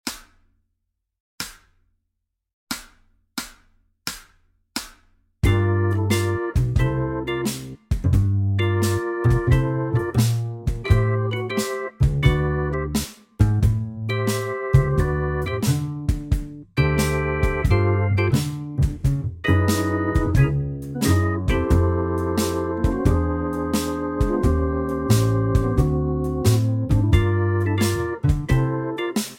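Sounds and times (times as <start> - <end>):
synth accompaniment: 5.4 - 7.6, 8.6 - 13.0, 13.7 - 18.5, 19.2 - 29.2.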